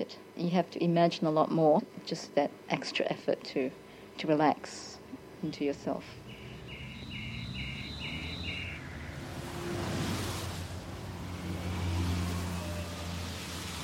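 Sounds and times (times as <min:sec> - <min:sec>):
speech: 0:00.0 - 0:06.2
cars swooshing along the street: 0:06.1 - 0:13.8.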